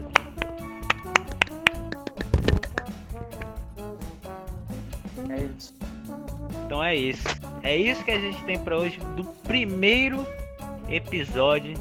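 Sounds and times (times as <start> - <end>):
scattered handclaps: 0.0 - 3.6
tonal sound: 0.4 - 2.9
speech: 6.7 - 11.8.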